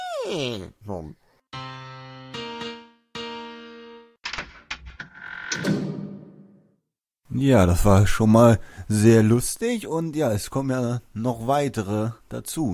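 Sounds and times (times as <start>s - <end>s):
speech: 0.2s - 1.7s, 7.4s - 12.7s
door opening or closing: 4.2s - 6.4s.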